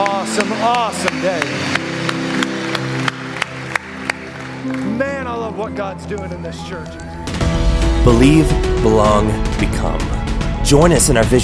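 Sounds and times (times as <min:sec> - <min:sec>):
audience applause: 0:00.0 - 0:05.1
speech: 0:00.4 - 0:01.9, 0:04.6 - 0:07.1, 0:08.0 - 0:11.4.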